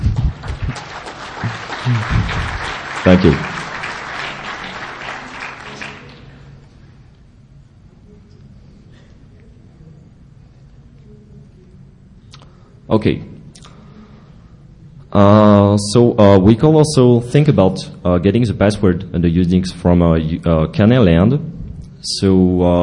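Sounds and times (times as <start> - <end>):
audience applause: 0.0 - 6.5
speech: 1.9 - 3.6, 12.9 - 13.3, 15.1 - 22.8.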